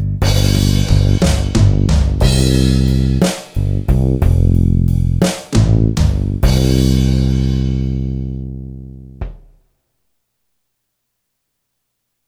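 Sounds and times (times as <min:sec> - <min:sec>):
drum machine ballad beat: 0:00.2 - 0:07.8.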